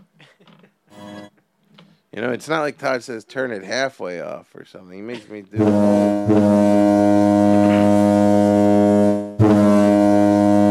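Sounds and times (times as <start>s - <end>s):
speech: 2.1s - 7.2s
foghorn sound effect with deep buzzy drone: 5.6s - 10.7s.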